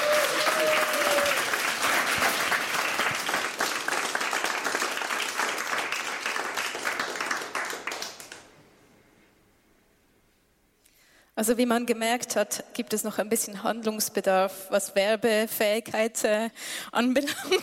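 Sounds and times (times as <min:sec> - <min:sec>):
studio audience applause: 0:00.0 - 0:08.5
speech: 0:11.4 - 0:17.6.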